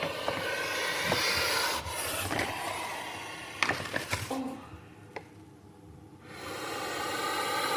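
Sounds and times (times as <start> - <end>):
puff adder puffing and hissing: 0.0 - 3.6, 6.3 - 7.7.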